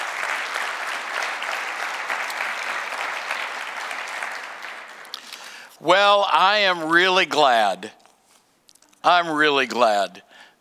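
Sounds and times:
congregation applauding during a church service: 0:00.0 - 0:05.8
speech: 0:05.8 - 0:08.0, 0:09.0 - 0:10.3.

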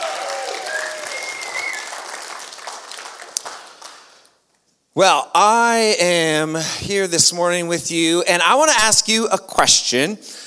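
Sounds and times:
audience applause: 0:00.0 - 0:04.2
audience whistles: 0:00.6 - 0:02.0
speech: 0:05.0 - 0:10.4.

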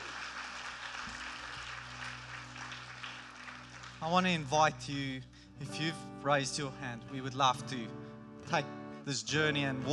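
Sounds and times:
church audience clapping and cheering: 0:00.0 - 0:04.9
speech: 0:04.0 - 0:09.9.

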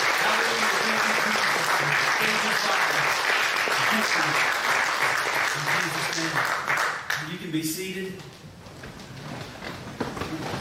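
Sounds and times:
audience hand clap of praise: 0:00.0 - 0:08.4
speech: 0:07.5 - 0:08.6.

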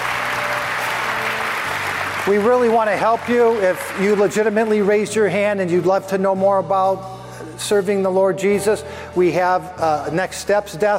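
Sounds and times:
audience applause: 0:00.0 - 0:05.0
speech: 0:02.3 - 0:10.9.

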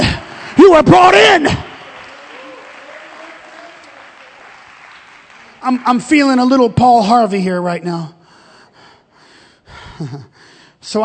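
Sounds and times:
audience clapping: 0:00.3 - 0:07.4
speech: 0:00.7 - 0:01.7, 0:05.6 - 0:08.2, 0:10.0 - 0:11.0.

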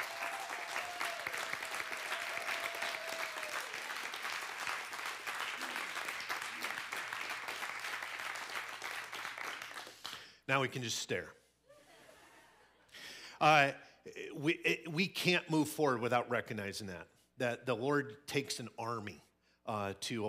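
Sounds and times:
audience applause: 0:00.0 - 0:10.2
speech: 0:10.5 - 0:11.4, 0:13.4 - 0:20.2.

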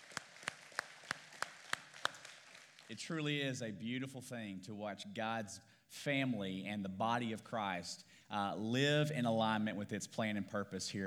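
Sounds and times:
audience applause: 0:00.0 - 0:02.9
speech: 0:02.9 - 0:11.0.

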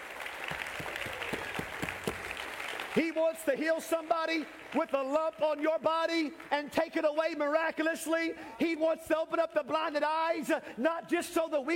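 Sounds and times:
audience clapping hands: 0:00.0 - 0:07.0
speech: 0:03.0 - 0:11.7.

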